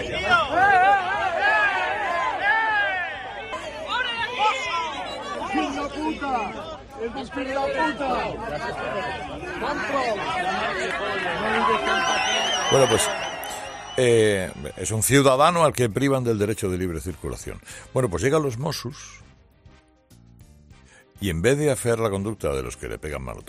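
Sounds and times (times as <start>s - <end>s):
crowd shouting insults in street: 0.0s - 15.0s
speech: 7.0s - 13.2s, 14.0s - 19.3s, 21.2s - 23.4s.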